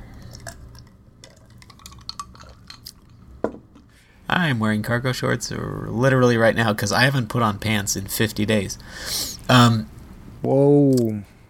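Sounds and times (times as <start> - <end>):
low hum: 0.0 - 11.4
ice cubes rattling in a glass: 1.2 - 3.1
speech: 4.3 - 11.3.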